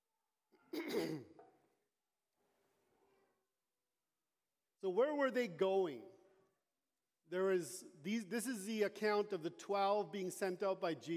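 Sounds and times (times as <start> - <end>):
speaker clearing throat and coughing during a scripture reading: 0.7 - 1.5
speech: 1.0 - 1.4, 4.8 - 6.1, 7.3 - 11.1.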